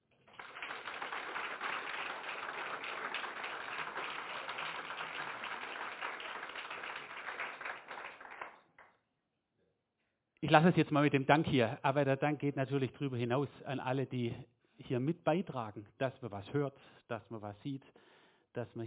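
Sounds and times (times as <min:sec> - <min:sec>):
audience applause: 0:00.1 - 0:08.9
speech: 0:10.5 - 0:18.0, 0:18.6 - 0:18.8.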